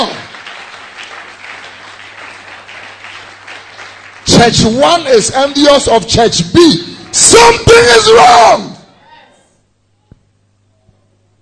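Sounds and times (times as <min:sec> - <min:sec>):
church congregation clapping hands during a sermon: 0:00.0 - 0:08.6
speech: 0:04.4 - 0:08.7.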